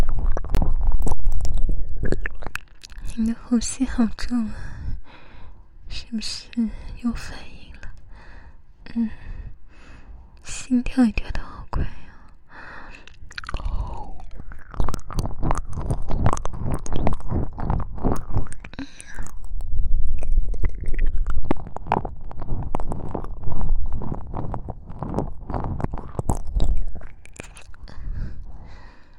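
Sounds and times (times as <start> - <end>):
ear licking mouth sounds: 0.0 - 3.2, 12.8 - 29.0
speech: 3.2 - 4.7, 6.1 - 7.5, 9.0 - 9.2, 10.7 - 12.0.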